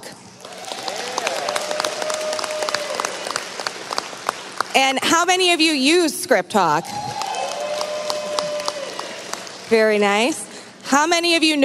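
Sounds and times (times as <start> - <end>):
audience clapping: 0.4 - 4.8, 7.0 - 10.2
speech: 4.8 - 7.0, 9.7 - 11.6.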